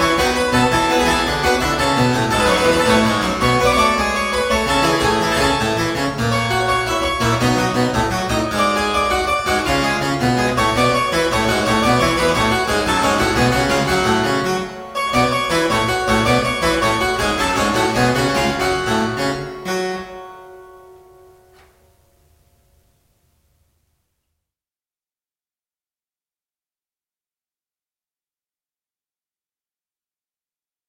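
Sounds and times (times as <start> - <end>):
baroque suite gigue in G minor: 0.0 - 21.1.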